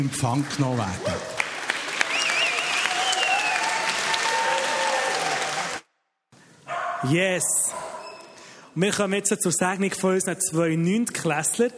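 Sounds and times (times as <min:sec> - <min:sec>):
speech: 0:00.0 - 0:01.4, 0:07.0 - 0:07.7, 0:08.8 - 0:11.7
audience applause: 0:00.0 - 0:05.9.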